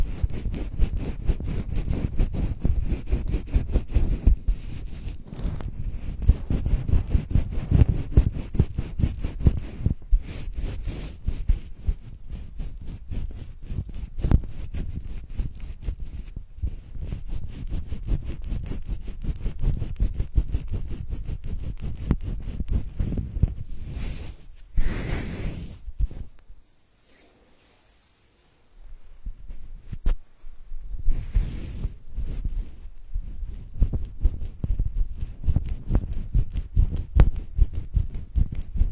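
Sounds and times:
hand massage rubbing and patting of skin: 0.0 - 28.6, 29.2 - 30.2, 31.0 - 38.9.

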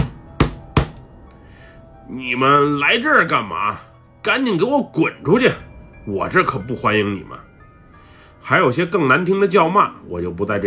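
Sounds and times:
hands banging on a car's engine hood: 0.0 - 1.0
speech: 2.1 - 7.5, 8.4 - 10.6.

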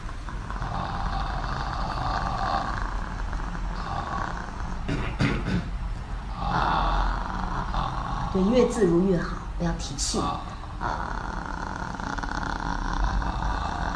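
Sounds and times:
vocal fry throat-relaxing exercise: 0.0 - 13.9
speech: 8.4 - 10.5.

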